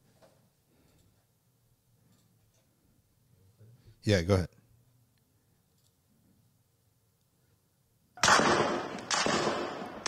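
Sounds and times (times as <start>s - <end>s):
speech: 4.0s - 4.6s
gunfire in video footage: 8.2s - 10.0s.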